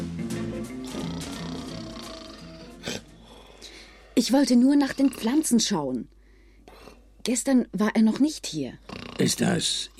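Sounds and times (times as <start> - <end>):
man snoring on a heavy wooden bed: 0.8 - 4.2, 4.8 - 5.4, 8.8 - 9.8
speech: 4.2 - 6.2, 7.2 - 9.9.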